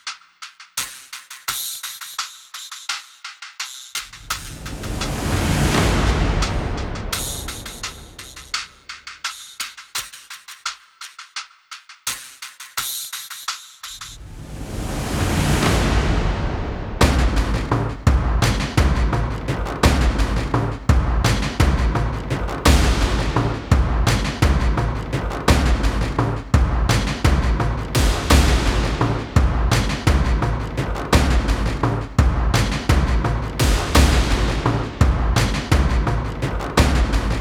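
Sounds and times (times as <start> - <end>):
cinematic tension drum composition: 3.9 - 10.1, 13.8 - 37.3.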